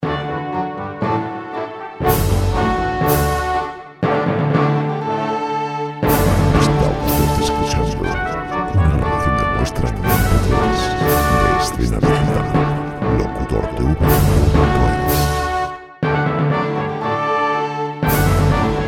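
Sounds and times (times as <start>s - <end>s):
orchestral music: 0.0s - 18.8s.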